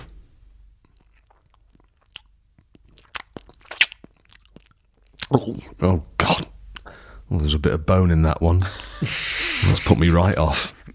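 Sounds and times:
eating crunchy processed chicken snack: 0.8s - 5.5s
speech: 5.3s - 6.4s, 7.3s - 10.8s.

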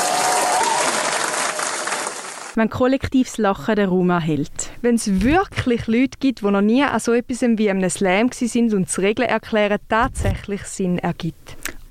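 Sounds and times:
audience applause: 0.0s - 2.6s
speech: 2.6s - 11.6s.

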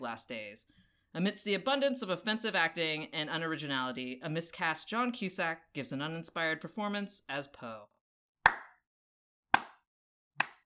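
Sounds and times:
speech: 0.0s - 7.9s
slow clap: 8.5s - 8.8s, 9.6s - 9.8s, 10.4s - 10.6s.

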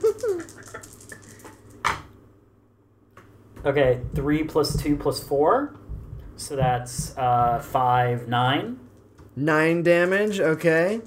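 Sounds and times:
dice rattling and clattering: 0.1s - 1.8s, 10.0s - 11.0s
speech: 3.6s - 5.8s, 6.4s - 8.8s, 9.4s - 11.0s.

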